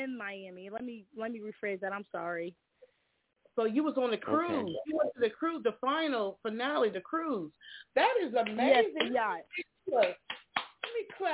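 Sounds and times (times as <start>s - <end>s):
speech: 0.0s - 2.7s, 3.6s - 10.4s, 11.0s - 11.3s
hand clapping: 8.4s - 11.3s.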